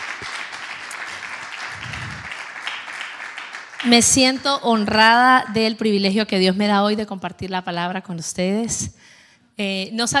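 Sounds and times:
audience applause: 0.0s - 4.4s
speech: 3.8s - 10.1s.

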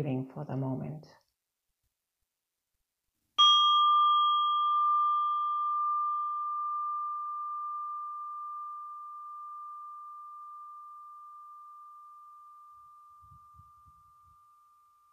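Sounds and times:
speech: 0.0s - 1.2s
meditation bell ringing: 3.4s - 15.1s.

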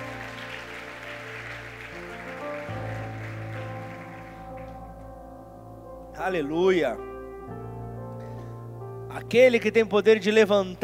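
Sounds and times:
audience applauding: 0.0s - 5.1s
speech: 6.2s - 7.1s, 9.3s - 10.8s.

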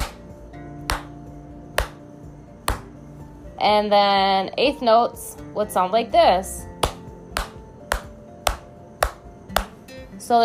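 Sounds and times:
hands clapping a quarter-note rhythm in a guitar strumming lesson: 0.0s - 1.2s, 1.8s - 2.0s, 2.7s - 2.9s, 6.8s - 9.8s
speech: 3.6s - 6.7s, 10.3s - 10.4s.

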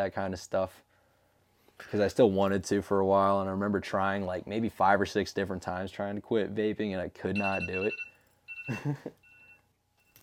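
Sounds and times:
speech: 0.0s - 0.9s, 1.8s - 8.1s, 8.7s - 9.2s
phone notification beep: 7.4s - 9.6s.

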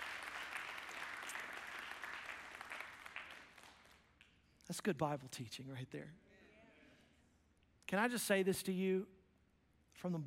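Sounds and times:
audience clapping: 0.0s - 4.4s
speech: 4.7s - 6.2s, 7.9s - 9.2s, 10.0s - 10.2s.

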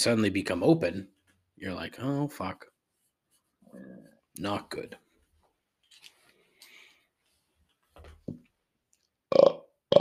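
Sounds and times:
speech: 0.0s - 2.7s, 3.7s - 5.0s
person burping: 9.3s - 10.0s.

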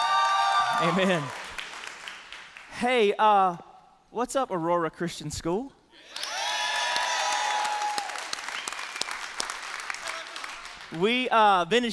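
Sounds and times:
audience cheering: 0.0s - 1.5s, 6.0s - 10.5s
audience applause: 0.0s - 2.6s, 6.1s - 11.1s
speech: 0.8s - 1.4s, 2.8s - 6.2s, 10.9s - 11.9s.

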